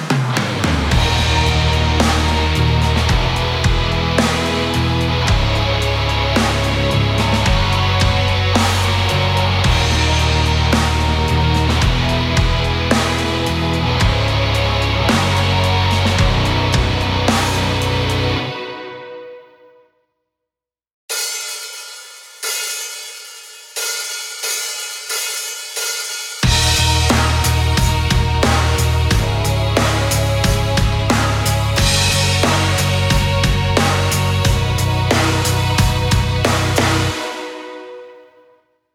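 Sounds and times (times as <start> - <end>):
karaoke singing: 0.1 - 19.0, 26.5 - 37.9.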